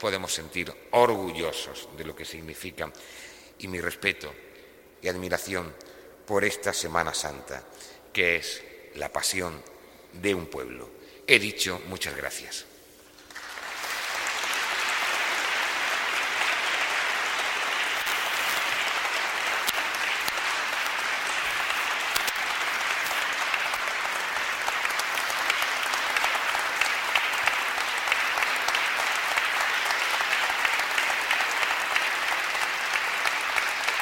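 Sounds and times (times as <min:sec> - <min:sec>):
speech: 0:00.0 - 0:12.7
audience applause: 0:13.2 - 0:34.0.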